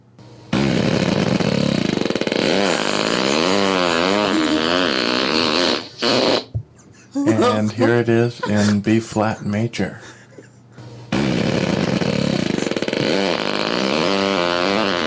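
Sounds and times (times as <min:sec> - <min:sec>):
loud fart: 0:00.5 - 0:06.7, 0:10.8 - 0:15.0
laughter: 0:04.1 - 0:04.9, 0:06.7 - 0:10.8, 0:11.8 - 0:12.8
speech: 0:07.6 - 0:10.1.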